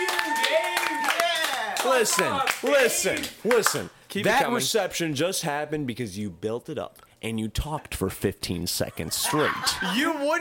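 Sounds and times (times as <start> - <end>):
small audience clapping: 0.0 - 3.9
speech: 1.8 - 10.3
laughter: 8.9 - 10.3.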